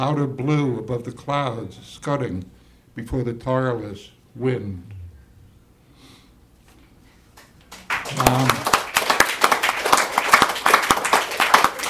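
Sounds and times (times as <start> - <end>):
speech: 0.0 - 5.0, 8.1 - 8.6
audience clapping: 7.3 - 11.8.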